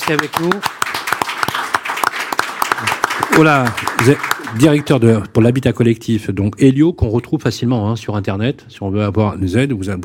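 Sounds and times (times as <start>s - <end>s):
audience applause: 0.0s - 5.2s
speech: 0.1s - 0.8s, 2.8s - 10.0s.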